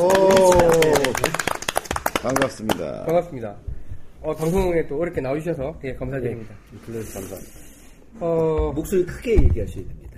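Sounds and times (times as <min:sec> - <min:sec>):
audience clapping: 0:00.0 - 0:03.3
speech: 0:02.6 - 0:10.0.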